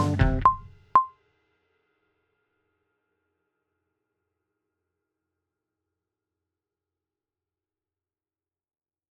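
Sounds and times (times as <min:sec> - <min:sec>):
guitar eighth notes in A minor at 120 bpm: 0:00.0 - 0:01.1.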